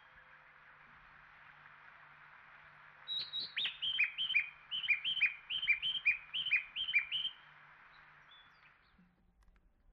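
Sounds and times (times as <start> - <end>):
Japanese bush warbler singing: 3.1 - 7.4, 8.2 - 8.7.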